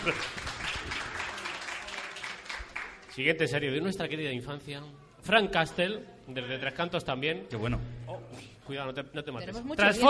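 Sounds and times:
speech: 0:00.0 - 0:00.4, 0:03.2 - 0:10.0
faint applause from a live audience: 0:00.0 - 0:03.3.

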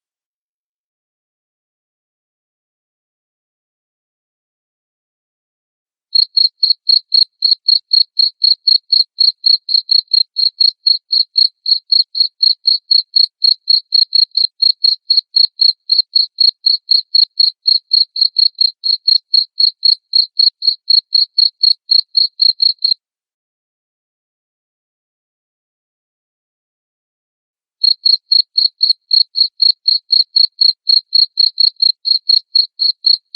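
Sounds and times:
cricket chirping: 0:06.2 - 0:23.0, 0:27.8 - 0:33.3.

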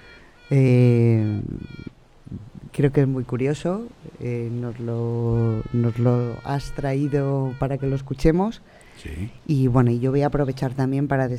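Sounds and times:
queen honeybee piping song: 0:00.0 - 0:02.8, 0:05.1 - 0:09.6
speech: 0:00.5 - 0:11.3.

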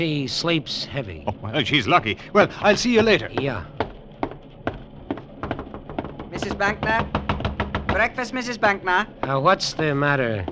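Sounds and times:
speech: 0:00.0 - 0:03.8, 0:06.4 - 0:07.2, 0:07.9 - 0:10.5
knocking on a train compartment door: 0:02.6 - 0:10.5.

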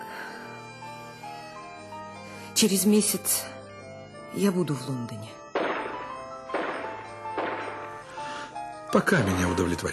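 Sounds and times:
faint tonal background: 0:00.0 - 0:09.9
speech: 0:02.6 - 0:03.6, 0:04.3 - 0:05.4, 0:08.9 - 0:09.9
gunshots in the mountains, radio play sound effect: 0:05.6 - 0:08.0.

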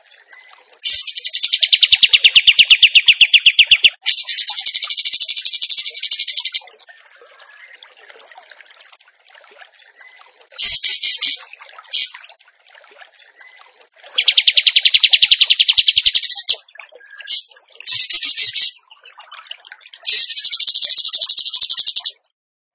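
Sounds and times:
bird trilling song: 0:00.3 - 0:06.7, 0:10.0 - 0:12.2, 0:14.2 - 0:19.0, 0:20.0 - 0:22.2.

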